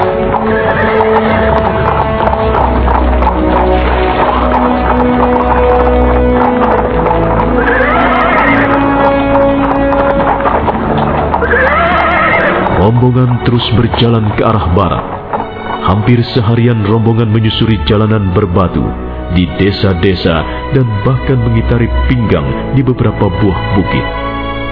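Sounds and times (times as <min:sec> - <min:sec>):
horse whinnying: 0:00.0 - 0:16.6
horse hooves clip-clopping alongside a cart on a stony village road: 0:00.0 - 0:24.7
speech: 0:13.5 - 0:15.2, 0:15.9 - 0:24.2.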